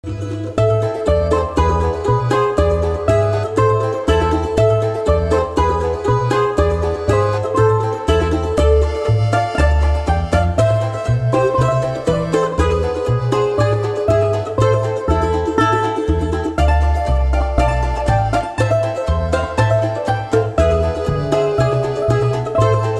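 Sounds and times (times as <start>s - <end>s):
balalaika: 0.0s - 22.9s.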